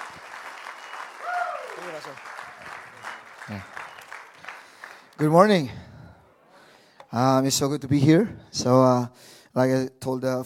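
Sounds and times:
audience applause welcoming a guest speaker at a church service: 0.0 - 5.5
speech: 2.0 - 2.4, 3.5 - 3.8, 5.2 - 5.8, 7.1 - 10.4.

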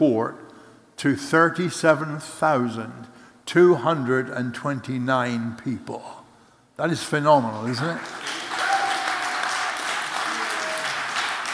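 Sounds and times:
speech: 0.0 - 0.4, 1.0 - 6.2, 6.8 - 8.4
audience applause: 7.9 - 11.5.

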